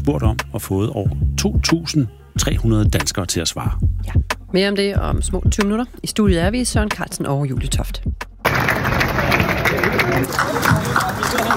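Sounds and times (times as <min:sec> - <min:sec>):
speech: 0:00.0 - 0:08.1, 0:10.2 - 0:11.5
thousands of farmers applauding outdoors on Christiansborg Slotsplads: 0:08.4 - 0:11.5.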